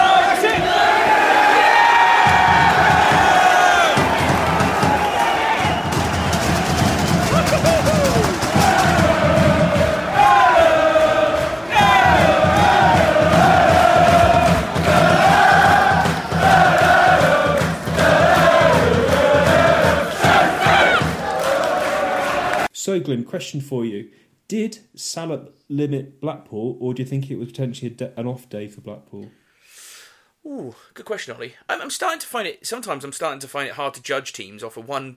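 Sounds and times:
football crowd chanting: 0.0 - 22.7
full-time whistle: 4.8 - 8.2
speech: 23.0 - 29.4, 30.4 - 35.1.

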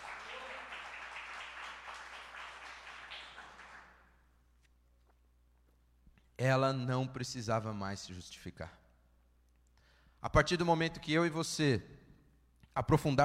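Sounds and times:
audience applauding: 0.0 - 4.0
speech: 6.4 - 8.8, 10.2 - 12.0, 12.8 - 13.2.

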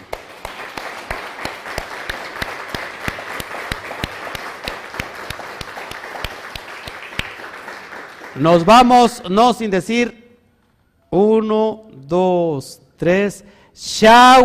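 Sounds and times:
audience applause: 0.0 - 8.7
speech: 8.4 - 10.2, 11.1 - 14.4.

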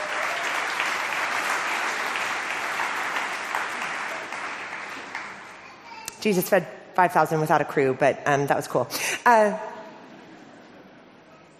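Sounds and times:
audience applause: 0.0 - 5.6
speech: 6.2 - 9.7.

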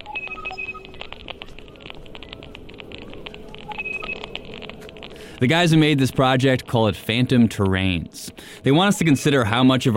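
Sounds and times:
robotic beeps of router ID numbers: 0.0 - 4.7
Wi-Fi sonification clicks: 0.0 - 6.8
speech: 5.4 - 9.9.

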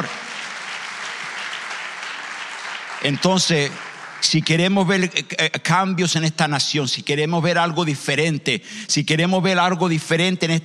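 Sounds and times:
audience applause: 0.0 - 5.1
speech: 3.0 - 10.6.

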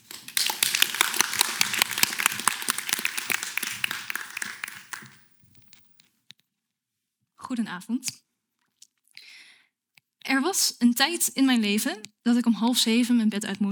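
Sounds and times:
audience applause: 0.0 - 5.2
speech: 7.5 - 8.3, 10.4 - 13.7.

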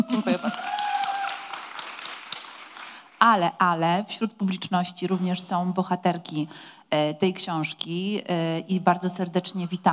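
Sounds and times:
speech: 0.0 - 0.6, 3.2 - 9.9
audience applause: 0.0 - 3.1.

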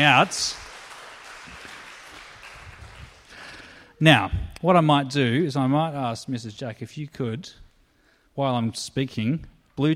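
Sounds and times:
speech: 0.0 - 0.6, 4.0 - 7.6, 8.4 - 9.9
audience clapping: 0.0 - 3.8.

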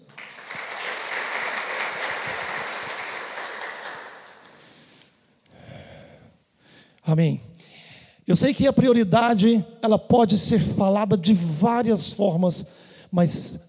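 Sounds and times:
crowd applause: 0.0 - 4.5
speech: 7.1 - 7.5, 8.3 - 13.6.

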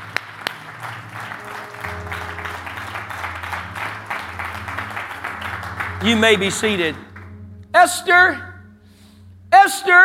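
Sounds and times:
audience clapping hands: 0.0 - 7.4
speech: 6.0 - 7.1, 7.8 - 8.5, 9.6 - 10.0.

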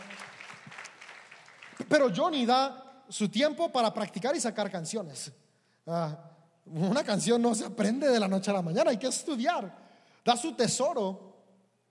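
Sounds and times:
audience applause: 0.0 - 2.0
speech: 1.8 - 11.3.

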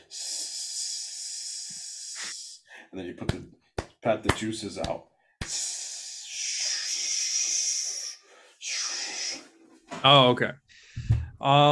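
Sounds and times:
voice imitating meat sizzling on a grill: 0.0 - 2.6, 5.4 - 9.5
speech: 2.9 - 5.6, 10.0 - 11.7.

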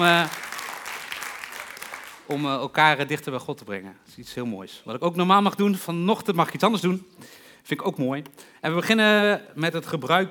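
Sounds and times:
speech: 0.0 - 0.4, 2.3 - 10.2
audience applause: 0.0 - 2.5.

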